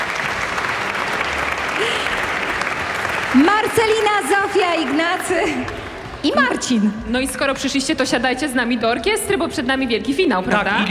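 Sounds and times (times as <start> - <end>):
audience applause: 0.0 - 6.7
speech: 3.3 - 10.8.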